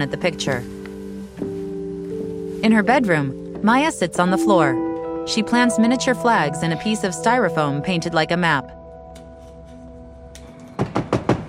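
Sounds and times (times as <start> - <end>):
speech: 0.0 - 0.8, 2.6 - 8.8
knocking on a window: 10.8 - 11.4.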